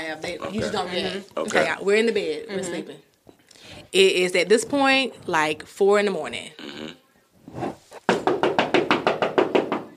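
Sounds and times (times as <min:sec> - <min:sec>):
speech: 0:00.0 - 0:07.8
loud knocks on a door: 0:08.1 - 0:09.9.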